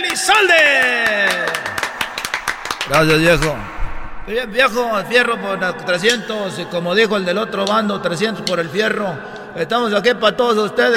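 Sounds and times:
speech: 0.0 - 1.1, 2.9 - 3.7, 4.3 - 10.9
audience applause in nightclub: 1.0 - 3.6.

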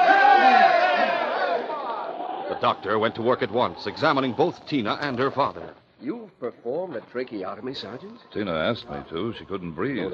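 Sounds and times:
crowd cheering: 0.0 - 4.6
speech: 2.6 - 10.1.

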